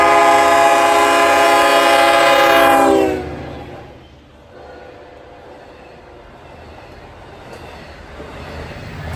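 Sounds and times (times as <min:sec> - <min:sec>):
K5LL horn: 0:00.0 - 0:05.4.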